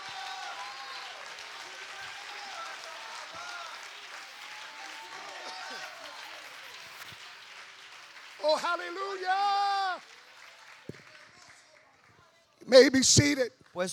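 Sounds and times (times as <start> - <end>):
congregation applauding at a Pentecostal church service: 0.0 - 13.9
speech: 8.4 - 9.7, 12.7 - 13.9.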